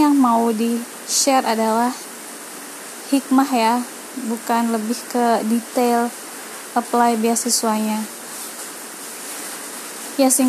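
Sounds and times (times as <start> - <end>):
light rain falling: 0.0 - 10.4
speech: 0.2 - 2.1, 3.1 - 6.2, 6.8 - 8.2, 10.2 - 10.4.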